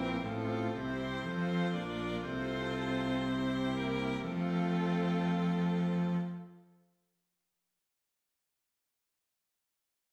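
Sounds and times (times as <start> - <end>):
strings playing a hymn: 0.0 - 6.6.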